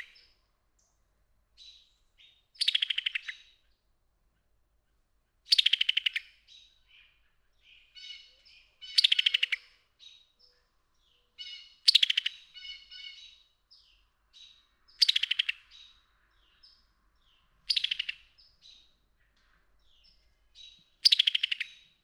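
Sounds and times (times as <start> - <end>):
Summer Tanager: 0.0 - 22.0.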